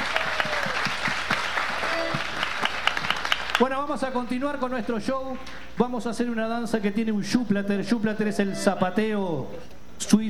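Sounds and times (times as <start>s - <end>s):
audience applause: 0.0s - 3.7s
speech: 3.6s - 10.2s.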